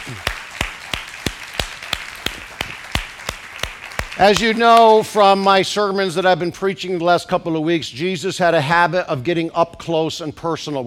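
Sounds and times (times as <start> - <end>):
audience clapping hands: 0.0 - 5.6
speech: 0.1 - 0.3, 4.2 - 10.8.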